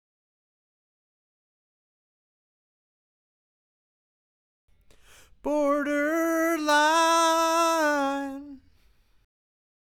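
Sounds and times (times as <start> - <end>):
backing vocals: 5.4 - 8.6.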